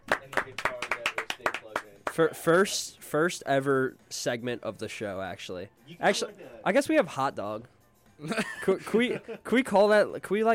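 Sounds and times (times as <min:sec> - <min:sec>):
people clapping in a studio: 0:00.0 - 0:02.4
speech: 0:00.3 - 0:01.5, 0:02.2 - 0:10.5
laughter: 0:08.2 - 0:09.6.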